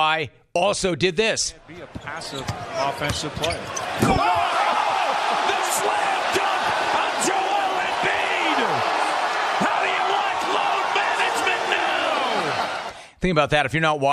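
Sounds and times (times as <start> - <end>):
speech: 0.0 - 4.6, 13.2 - 14.1
arena crowd roaring after slam dunk: 1.6 - 13.1
scattered shouts and whoops: 4.0 - 13.0.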